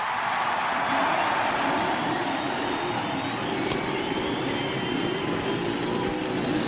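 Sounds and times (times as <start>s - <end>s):
racing car engines restarting and roaring: 0.0s - 6.6s.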